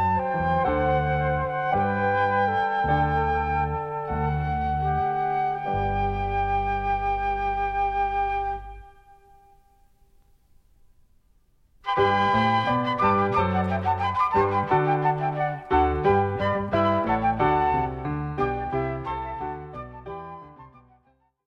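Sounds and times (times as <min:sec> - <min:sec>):
bass in a trio sonata: 0:00.0 - 0:09.5, 0:11.8 - 0:21.4
keyboard instrument in a trio sonata: 0:00.0 - 0:10.0, 0:11.8 - 0:21.1
two flutes in a trio sonata: 0:00.0 - 0:10.0, 0:11.8 - 0:21.4.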